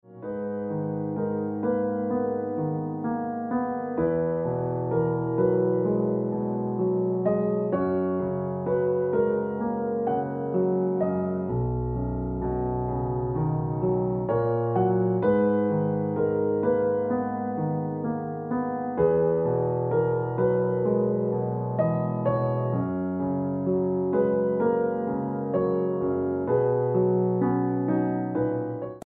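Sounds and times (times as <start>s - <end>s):
piano ringtone music: 0.1s - 29.0s.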